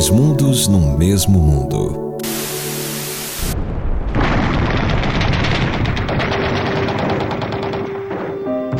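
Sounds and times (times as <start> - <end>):
speech: 0.1 - 2.1
rapid crackling bursts: 1.0 - 8.7
bombs exploding and missiles launching in televised war footage: 3.5 - 8.7.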